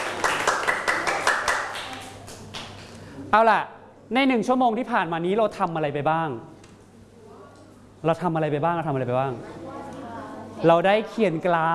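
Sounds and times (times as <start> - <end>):
classroom applause for group two: 0.0 - 2.9
speech: 3.3 - 6.6, 8.0 - 9.8, 10.6 - 11.7.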